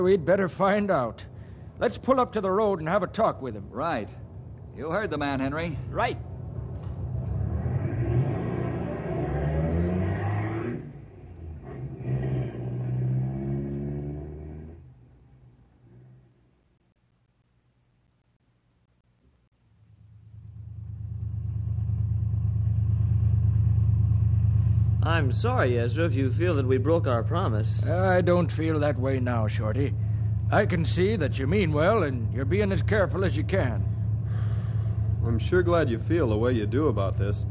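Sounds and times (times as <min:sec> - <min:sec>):
speech: 0:00.0 - 0:04.2, 0:04.8 - 0:06.3, 0:25.1 - 0:33.9, 0:35.2 - 0:37.4
car engines revving and rumbling: 0:06.2 - 0:16.4, 0:20.7 - 0:37.4.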